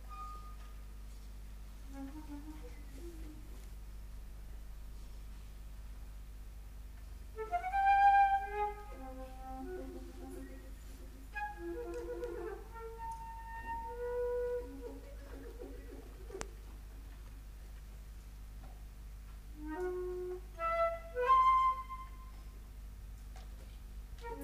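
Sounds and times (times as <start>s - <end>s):
flute: 0.0s - 0.7s, 1.8s - 3.7s, 7.4s - 16.5s, 19.5s - 22.5s, 24.2s - 24.4s.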